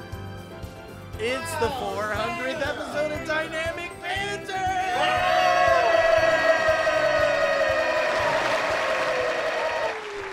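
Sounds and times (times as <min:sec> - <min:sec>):
speech: 0:01.2 - 0:05.3
fake studio audience cheering and applause sound effect: 0:04.4 - 0:10.3.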